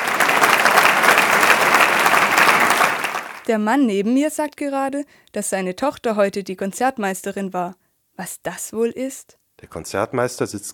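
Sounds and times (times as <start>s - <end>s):
concert audience applause: 0.0s - 3.5s
speech: 3.5s - 10.7s.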